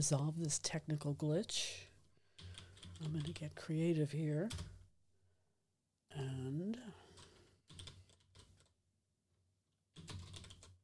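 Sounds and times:
speech: 0.0 - 1.9, 3.0 - 4.7, 6.1 - 7.0
computer keyboard keys pounded furiously: 2.4 - 3.4, 7.2 - 8.7, 10.0 - 10.8.

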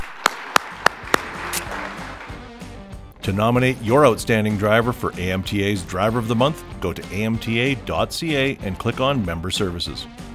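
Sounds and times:
sharp hand claps: 0.0 - 2.7
speech: 3.2 - 10.3.

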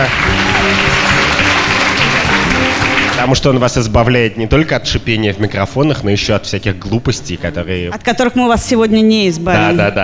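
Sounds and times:
audience applause: 0.0 - 3.4
speech: 3.2 - 10.0.

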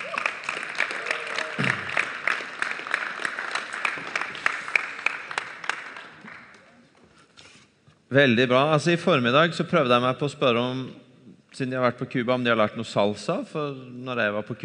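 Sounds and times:
audience applause: 0.0 - 6.6
speech: 8.1 - 11.0, 11.6 - 14.6.

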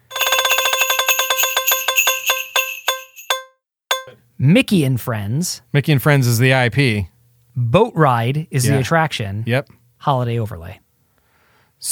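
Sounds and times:
chime: 0.0 - 4.2
prize wheel spinning: 0.0 - 4.2
speech: 4.4 - 10.8.

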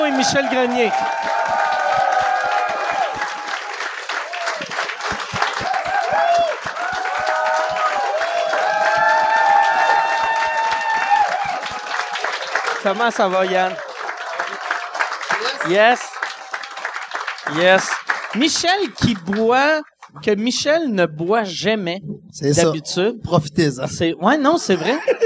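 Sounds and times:
audience applause: 0.0 - 20.2
speech: 0.1 - 1.8, 12.8 - 13.8, 15.6 - 16.1, 17.5 - 25.2
laughter: 24.7 - 25.2.

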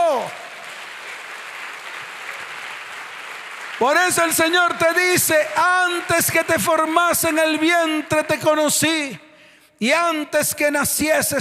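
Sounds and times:
audience applause: 0.0 - 7.4
speech: 3.8 - 9.2, 9.8 - 11.3.

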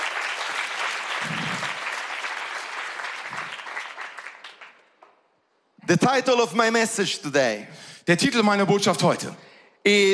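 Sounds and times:
audience applause: 0.0 - 4.8
speech: 5.9 - 10.1.

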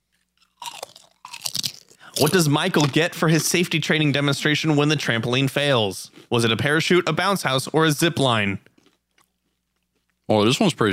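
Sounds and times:
crunchy snack being chewed: 0.0 - 3.1, 8.6 - 10.3
speech: 2.2 - 8.7, 10.3 - 10.9.

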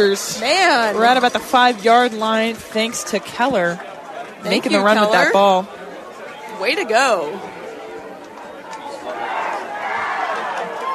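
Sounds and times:
speech: 0.0 - 5.8, 6.6 - 7.6
Charger fans screaming: 8.8 - 10.9.

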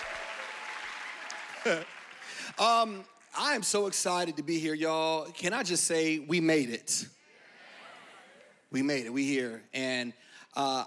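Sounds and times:
audience applauding at a lively talk event: 0.0 - 3.6
speech: 1.6 - 7.2, 8.7 - 10.8.

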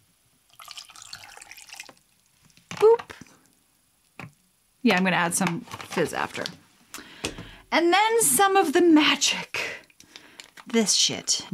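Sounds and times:
cranberry juice pouring with a bubbly gurgle: 0.5 - 2.4
speech: 4.8 - 6.6, 7.7 - 9.5, 10.8 - 11.5.

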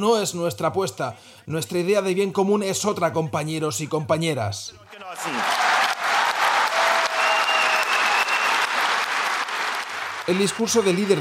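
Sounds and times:
speech: 0.0 - 5.7, 10.3 - 11.1
applause from a large crowd after a congress speech: 4.9 - 11.1
faint cheers and whistles: 5.0 - 11.1.

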